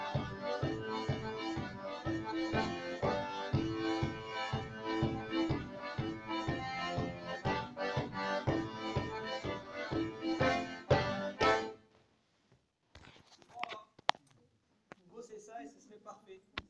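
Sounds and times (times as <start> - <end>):
diatonic accordion accompaniment: 0.0 - 11.8.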